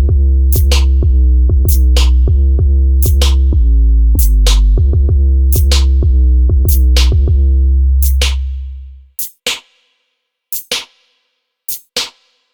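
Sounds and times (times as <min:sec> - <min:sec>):
drum beat: 0:00.0 - 0:03.6, 0:04.2 - 0:08.5, 0:09.2 - 0:12.5.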